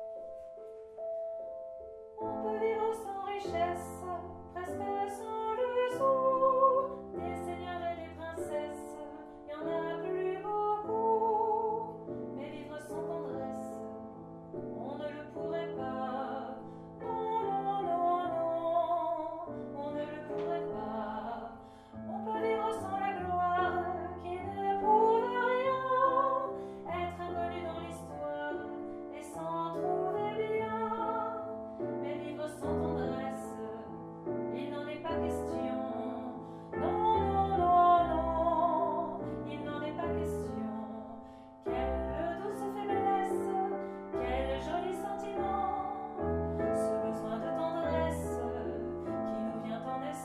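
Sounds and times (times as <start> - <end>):
bass: 1.1 - 50.2.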